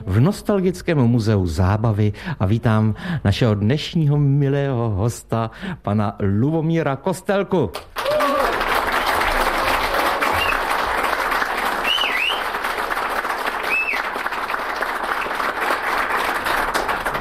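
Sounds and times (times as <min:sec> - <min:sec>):
speech: 0:00.1 - 0:08.0
audience applause: 0:07.8 - 0:17.1.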